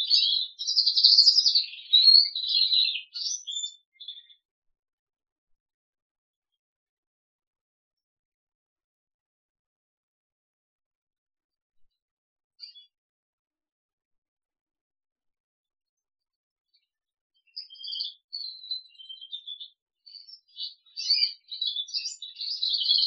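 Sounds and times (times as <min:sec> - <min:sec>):
crested canary singing: 0:00.0 - 0:04.4, 0:12.6 - 0:12.9, 0:16.8 - 0:23.0.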